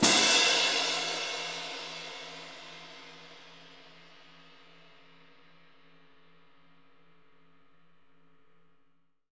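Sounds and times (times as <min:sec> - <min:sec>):
orchestral cymbal crash: 0:00.0 - 0:05.1.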